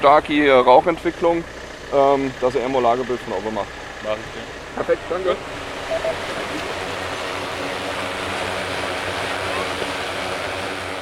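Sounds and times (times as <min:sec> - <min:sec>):
speech: 0:00.0 - 0:06.7
drone taking off, rotors whirring: 0:05.4 - 0:10.8.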